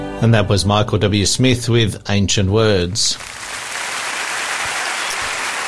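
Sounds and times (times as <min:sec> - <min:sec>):
speech: 0:00.2 - 0:03.4
live audience clapping: 0:03.1 - 0:05.6.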